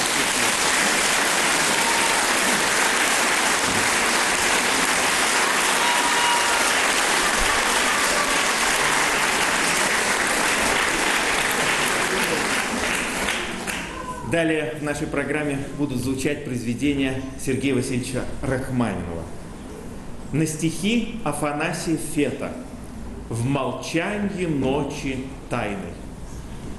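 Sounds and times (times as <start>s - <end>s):
audience applause: 0.0s - 14.0s
speech: 14.3s - 19.4s, 20.3s - 22.7s, 23.3s - 26.0s.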